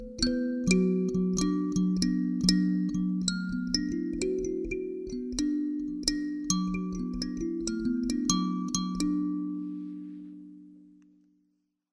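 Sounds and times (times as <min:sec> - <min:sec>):
D major pentatonic kalimba improvisation: 0:00.0 - 0:11.0.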